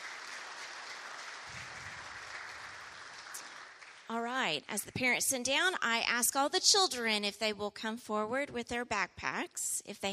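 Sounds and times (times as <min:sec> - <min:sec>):
audience applause: 0:00.0 - 0:04.1
speech: 0:04.1 - 0:10.1.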